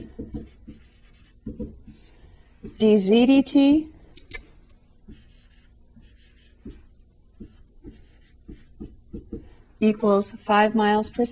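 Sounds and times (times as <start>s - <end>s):
pen scratching while writing out quantities for a related rates problem: 0.0s - 2.1s, 5.1s - 6.8s, 7.4s - 9.4s
speech: 2.8s - 3.9s, 9.8s - 11.3s.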